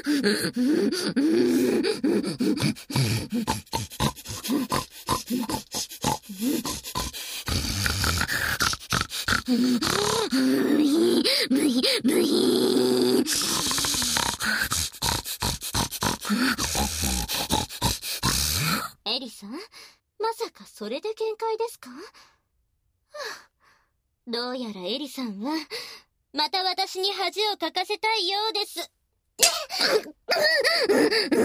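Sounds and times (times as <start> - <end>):
speech: 0.0 - 5.5, 9.5 - 12.5, 20.8 - 22.2, 24.3 - 31.4
person imitating pig grunts and squeals: 0.0 - 19.0.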